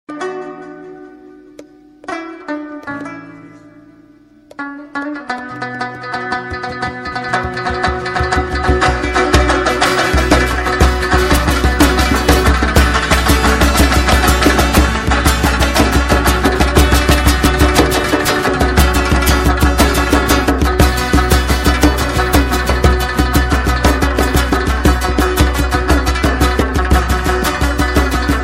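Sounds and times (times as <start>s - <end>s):
rabab: 0.1s - 28.4s
war drums: 7.2s - 28.4s.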